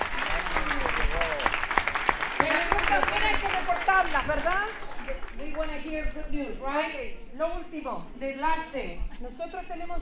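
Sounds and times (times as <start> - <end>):
audience applauding: 0.0 - 5.8
speech: 2.4 - 10.0.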